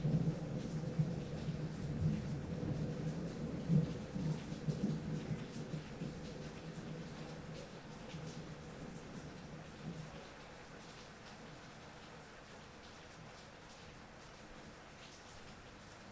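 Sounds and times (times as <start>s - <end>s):
thunder: 0.0s - 7.3s.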